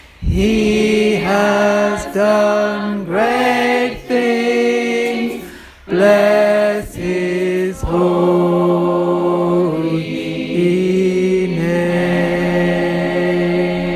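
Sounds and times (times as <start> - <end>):
tenors of a gospel choir singing: 0.0 - 13.9.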